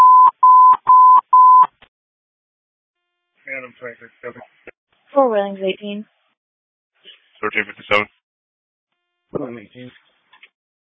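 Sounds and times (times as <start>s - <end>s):
telephone dialing tone beeps: 0.0s - 1.7s
speech: 3.8s - 6.2s, 7.4s - 8.2s, 9.4s - 10.0s.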